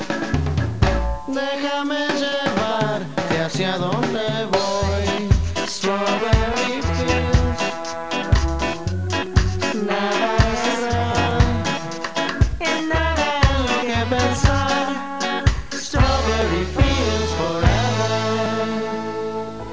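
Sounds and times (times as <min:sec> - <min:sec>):
music: 0:00.0 - 0:19.7.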